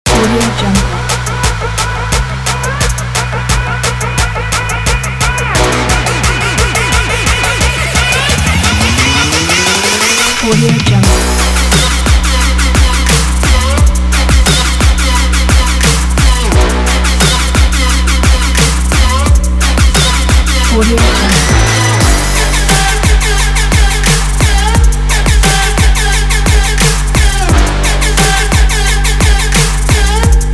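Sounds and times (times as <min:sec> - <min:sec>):
trap music: 0:00.0 - 0:30.5.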